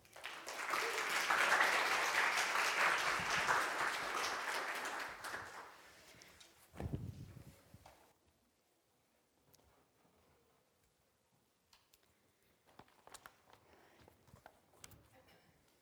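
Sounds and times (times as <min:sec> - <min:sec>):
audience applause welcoming a speaker at a Palm Sunday church service: 0:00.0 - 0:05.9.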